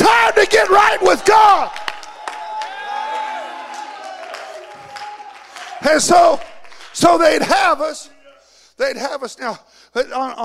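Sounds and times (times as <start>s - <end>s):
audience shouting: 0.0s - 6.2s
audience clapping: 0.6s - 7.9s
speech: 5.8s - 8.2s, 8.8s - 10.4s.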